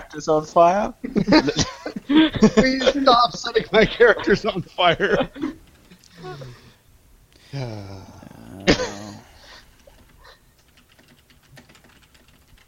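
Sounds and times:
speech: 0.1 - 5.6, 7.5 - 8.1
laughter: 1.0 - 5.6
vocal sounds: 7.4 - 9.6
typing on a computer keyboard: 9.8 - 12.6.

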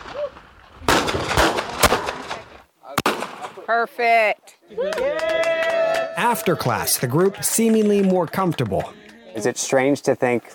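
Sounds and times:
gunshots at a women's firearms training class: 0.0 - 3.6
speech: 3.7 - 5.5, 6.2 - 10.5.

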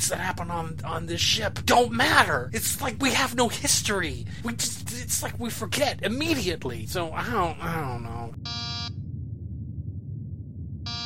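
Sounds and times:
speech: 0.0 - 8.7
low steady rumble: 0.0 - 11.0
door buzzer: 8.5 - 8.9, 10.9 - 11.0.

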